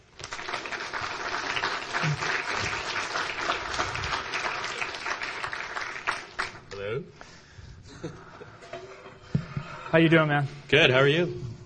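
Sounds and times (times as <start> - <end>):
audience applause welcoming a guest onto the stage: 0.0 - 6.7
speech: 2.0 - 2.3, 9.9 - 11.4.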